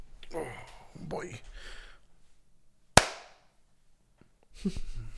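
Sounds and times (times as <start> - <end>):
speech: 0.4 - 1.8, 4.6 - 5.0
hand clap: 3.0 - 3.4.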